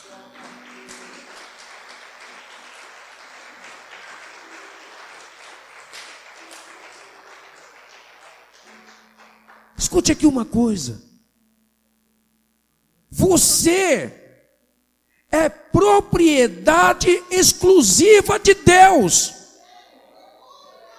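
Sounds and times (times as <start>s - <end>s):
audience applauding: 0.0s - 9.9s
faint low tone humming: 0.0s - 20.9s
speech: 9.8s - 11.1s, 13.3s - 14.2s, 15.9s - 19.4s.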